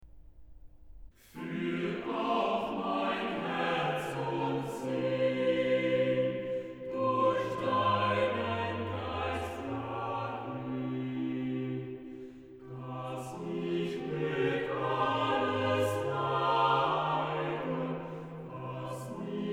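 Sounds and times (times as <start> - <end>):
organ chorale: 1.4 - 19.5.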